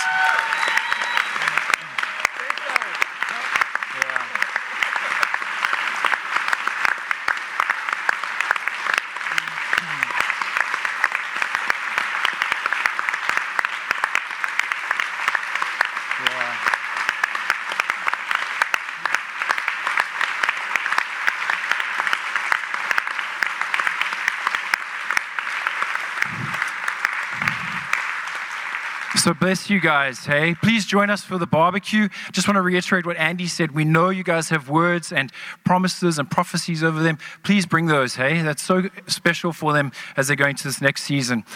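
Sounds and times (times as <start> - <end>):
audience applauding: 0.0 - 31.4
speech: 29.3 - 41.5.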